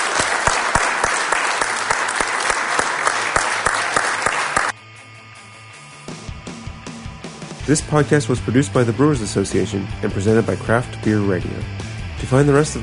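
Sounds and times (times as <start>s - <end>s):
audience applause: 0.0s - 4.8s
speech: 7.7s - 12.8s.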